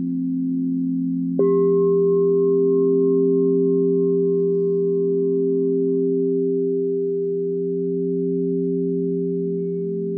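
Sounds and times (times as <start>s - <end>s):
crystal singing bowls in sound meditation: 0.0s - 10.1s.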